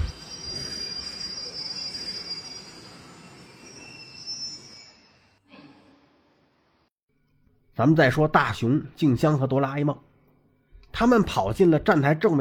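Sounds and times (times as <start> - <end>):
train brakes squealing: 0.0 - 5.4
speech: 7.8 - 10.1, 10.9 - 12.3.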